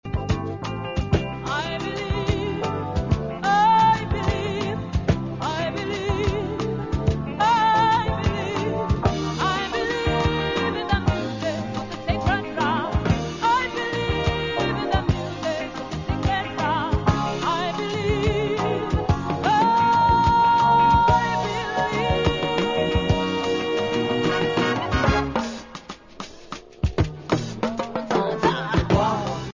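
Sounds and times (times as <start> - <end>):
sacred drum: 0.0 - 29.5.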